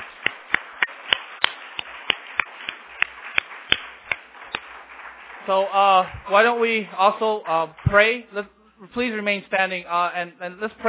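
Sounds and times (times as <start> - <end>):
round of applause for the moms: 0.0 - 7.4
speech: 5.5 - 10.8.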